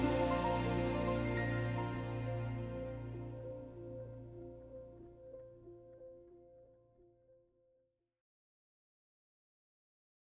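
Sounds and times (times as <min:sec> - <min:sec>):
soprano singing: 0:00.0 - 0:03.4.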